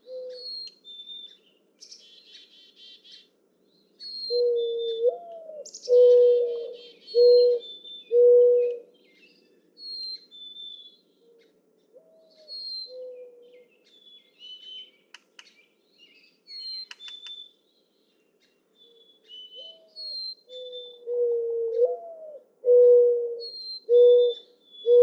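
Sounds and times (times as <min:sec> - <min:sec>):
mourning dove cooing: 0:00.0 - 0:00.5, 0:04.3 - 0:08.9, 0:11.3 - 0:13.7, 0:19.6 - 0:25.0.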